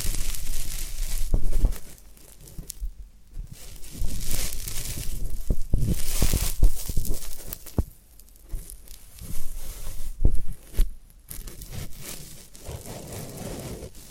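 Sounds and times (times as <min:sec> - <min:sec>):
sharp little cracks and knocks: 0:00.0 - 0:09.3
floral foam crumbling and tearing: 0:00.0 - 0:14.1.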